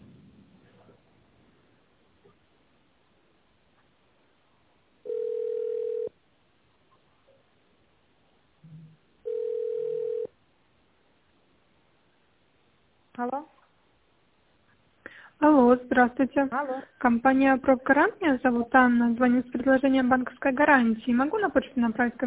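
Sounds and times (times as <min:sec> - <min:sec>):
telephone ringback tone: 0:05.1 - 0:06.1, 0:09.3 - 0:10.3
speech: 0:15.4 - 0:22.2.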